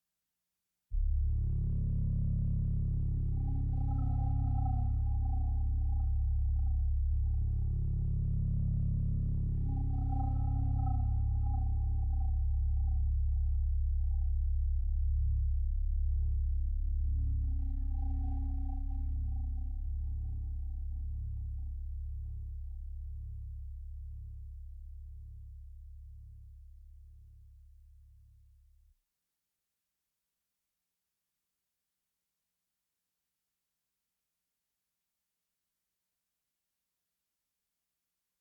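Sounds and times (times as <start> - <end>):
bass: 1.0 - 28.9.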